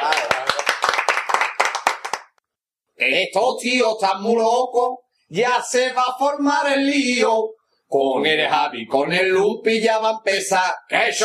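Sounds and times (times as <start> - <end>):
applause: 0.0 - 2.4
speech: 3.0 - 11.2.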